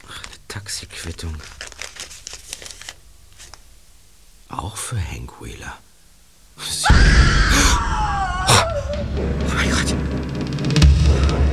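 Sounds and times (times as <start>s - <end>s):
speech: 0.6s - 1.6s, 4.5s - 5.9s, 8.8s - 11.5s
person screaming: 6.8s - 9.2s.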